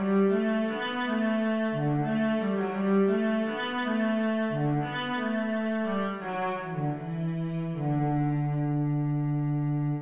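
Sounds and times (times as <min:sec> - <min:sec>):
spring cello melody: 0:00.0 - 0:10.0.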